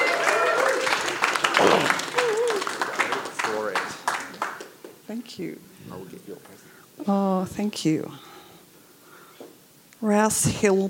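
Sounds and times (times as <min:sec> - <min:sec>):
scattered cheers: 0:00.0 - 0:02.9
audience applause: 0:00.0 - 0:05.0
overlapping voices: 0:00.0 - 0:05.0
speech: 0:05.2 - 0:08.3, 0:10.0 - 0:10.8.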